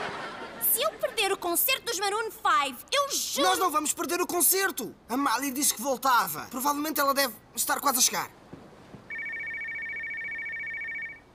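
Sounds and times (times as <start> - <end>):
laughter: 0.0 - 1.4
speech: 1.5 - 8.4
landline telephone ringing before answering machine: 9.1 - 11.3.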